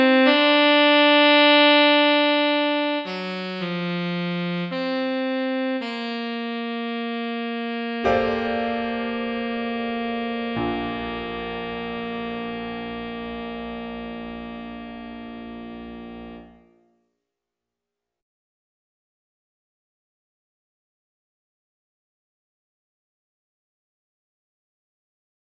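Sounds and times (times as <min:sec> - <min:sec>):
romantic saxophone music: 0:00.0 - 0:16.8.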